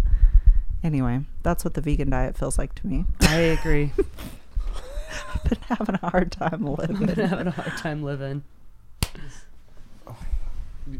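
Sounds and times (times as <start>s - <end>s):
speech: 0.8s - 4.4s, 5.1s - 8.6s
laughter: 3.2s - 8.1s
hand clap for audio sync: 9.0s - 9.3s.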